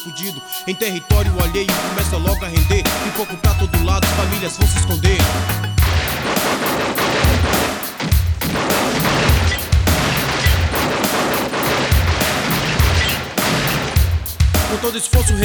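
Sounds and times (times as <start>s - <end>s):
speech: 0.0s - 7.8s, 14.7s - 15.4s
heavy low thuds: 1.1s - 6.3s, 7.2s - 11.0s, 11.8s - 15.4s
gunfire crackling in dense rapid bursts: 5.2s - 15.0s.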